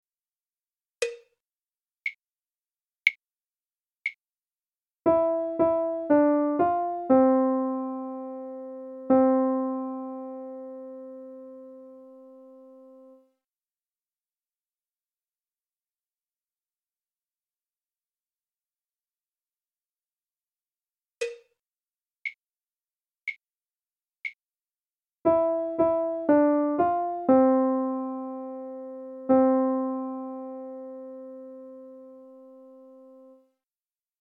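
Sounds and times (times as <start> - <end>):
melody: 5.1 - 13.2, 25.3 - 33.4.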